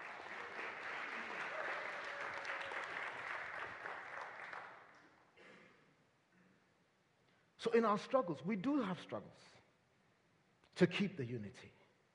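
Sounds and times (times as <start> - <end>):
audience applause: 0.0 - 5.0
speech: 7.6 - 9.6, 10.8 - 11.8.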